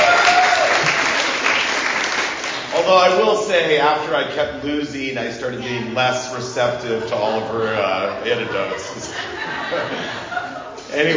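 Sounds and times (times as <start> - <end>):
audience at a bingo day clapping for the MC: 0.0 - 3.2
speech: 3.5 - 10.2, 10.9 - 11.1
laughter: 5.5 - 11.1.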